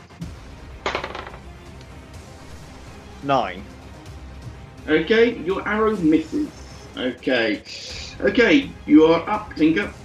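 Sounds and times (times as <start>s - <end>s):
twenty-sided die tumbling across a hard surface: 0.9s - 1.4s
speech: 3.2s - 3.8s, 4.8s - 10.0s.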